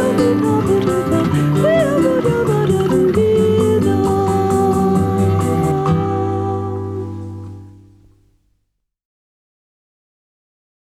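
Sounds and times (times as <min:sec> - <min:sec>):
soft bossa nova music: 0:00.0 - 0:08.3.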